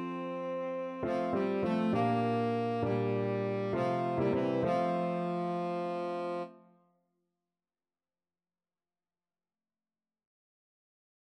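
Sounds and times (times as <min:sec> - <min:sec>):
tenor saxophone: 0:00.0 - 0:06.7.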